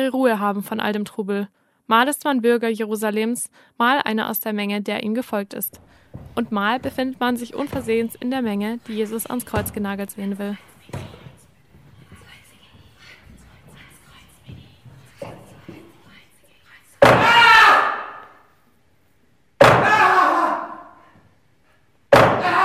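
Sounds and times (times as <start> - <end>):
speech: 0.0 - 11.2
hammer striking a wooden block: 17.0 - 17.5, 19.6 - 20.0, 22.1 - 22.5.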